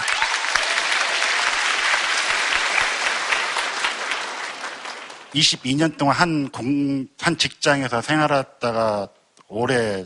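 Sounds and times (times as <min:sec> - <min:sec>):
louder audience applause: 0:00.0 - 0:05.6
speech: 0:05.3 - 0:10.0.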